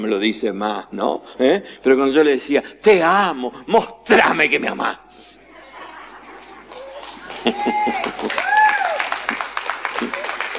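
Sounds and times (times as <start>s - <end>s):
speech: 0.0s - 5.4s, 7.4s - 8.6s
laughter: 5.4s - 10.5s
audience applauding: 6.6s - 10.5s
high-pitched voices cheering and calling out: 6.7s - 9.4s.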